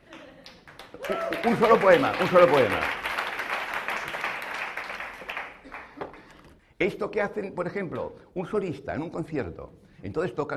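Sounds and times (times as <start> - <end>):
audience applause: 0.0 - 6.3
speech: 1.1 - 3.0, 6.8 - 10.5.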